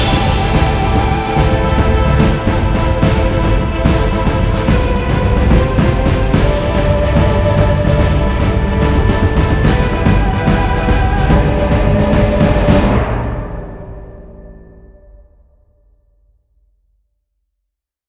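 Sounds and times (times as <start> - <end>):
epic heroic action music: 0.0 - 14.4.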